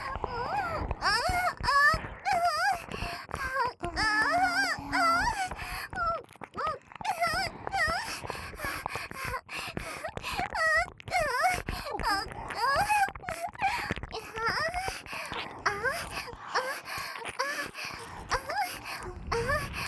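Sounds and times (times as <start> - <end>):
licking of both ears: 0.0 - 19.8
acted moaning: 3.8 - 5.5.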